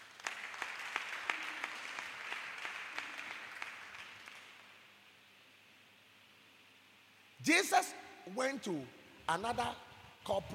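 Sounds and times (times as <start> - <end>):
congregation clapping in rhythm at an Easter convention: 0.0 - 4.8
speech: 7.4 - 10.5.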